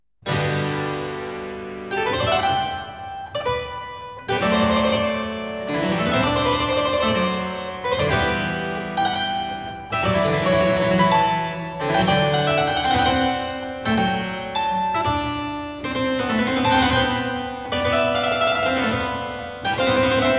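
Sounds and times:
harpsichord overture piece: 0.2 - 20.3.

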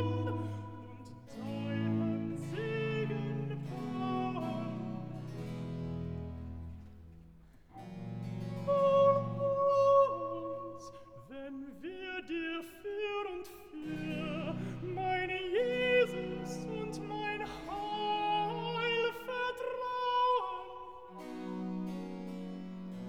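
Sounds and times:
alto voice singing a recitative: 0.0 - 6.2, 8.3 - 22.9.

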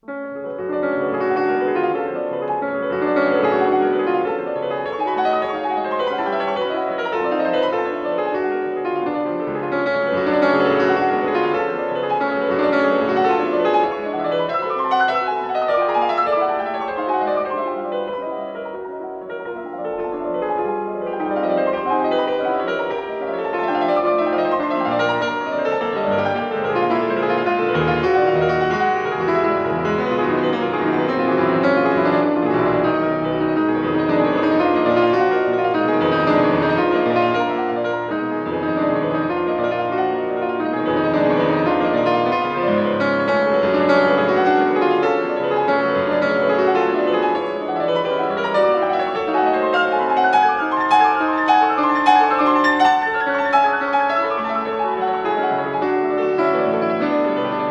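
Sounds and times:
piano prelude in F sharp minor: 0.0 - 57.6.

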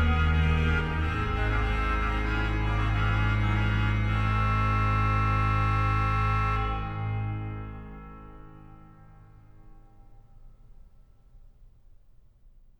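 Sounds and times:
organ playing chorale preludes: 0.0 - 8.9.

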